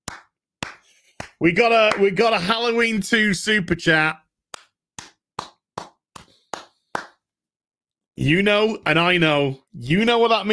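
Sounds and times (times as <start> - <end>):
hand clapping: 0.0 - 2.3, 4.5 - 7.3
speech: 1.4 - 4.2, 8.2 - 10.5.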